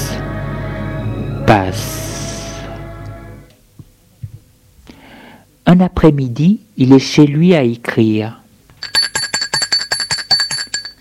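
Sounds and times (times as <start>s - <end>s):
speech: 1.5s - 2.0s, 5.8s - 8.4s
electric doorbell ringing: 8.8s - 10.9s.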